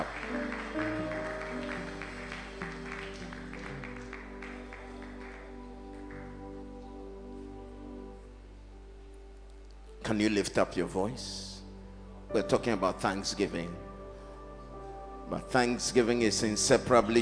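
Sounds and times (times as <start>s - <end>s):
audience clapping: 0.0s - 6.8s
sustained keyboard chords: 0.0s - 17.1s
speech: 10.1s - 11.5s, 12.3s - 13.8s, 15.3s - 17.1s.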